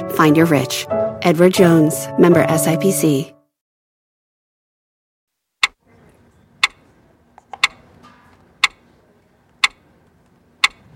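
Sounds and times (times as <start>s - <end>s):
speech: 0.1s - 3.4s
clock ticking: 6.6s - 6.8s, 7.5s - 7.8s, 8.6s - 8.8s, 9.6s - 9.8s, 10.6s - 10.9s.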